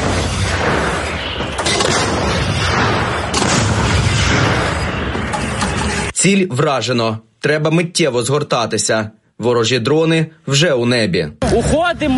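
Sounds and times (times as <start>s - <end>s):
artillery gun firing: 0.0s - 6.1s
speech: 6.2s - 12.1s.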